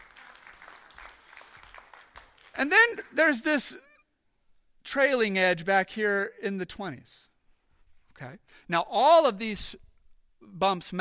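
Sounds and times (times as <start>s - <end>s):
audience applause: 0.0s - 2.7s
speech: 2.6s - 3.9s, 4.9s - 7.3s, 8.2s - 10.9s.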